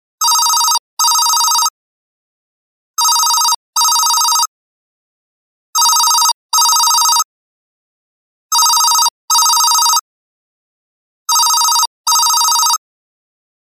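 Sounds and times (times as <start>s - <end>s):
digital small business phone system: 0.2s - 1.7s, 3.0s - 4.5s, 5.8s - 7.3s, 8.5s - 10.0s, 11.3s - 12.8s.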